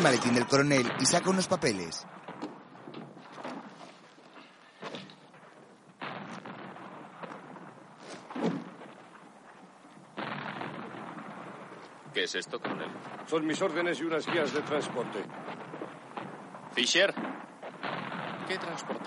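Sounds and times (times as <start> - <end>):
speech: 0.0 - 2.1, 12.2 - 15.7, 16.8 - 17.3, 18.5 - 19.0
explosions in a war film: 0.0 - 19.0.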